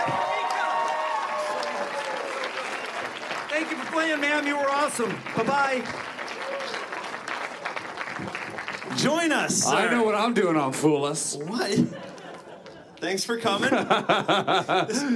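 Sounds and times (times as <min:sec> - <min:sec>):
audience applause: 0:00.0 - 0:10.2
speech: 0:04.0 - 0:06.1, 0:09.0 - 0:12.1, 0:13.0 - 0:15.1
laughter: 0:11.6 - 0:15.1.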